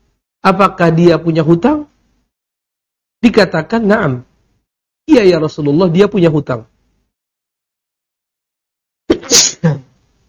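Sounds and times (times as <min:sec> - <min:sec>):
speech: 0:00.4 - 0:01.9, 0:03.2 - 0:04.3, 0:05.1 - 0:06.7
sneeze: 0:09.1 - 0:09.9.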